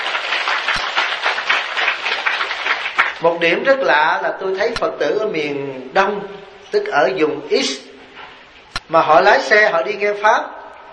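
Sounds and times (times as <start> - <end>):
crowd clapping: 0.0 - 3.3
speech: 3.2 - 7.9, 8.9 - 10.6.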